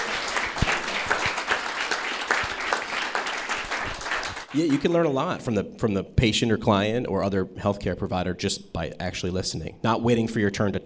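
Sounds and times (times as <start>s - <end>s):
crowd applauding: 0.0s - 5.1s
speech: 4.5s - 10.8s.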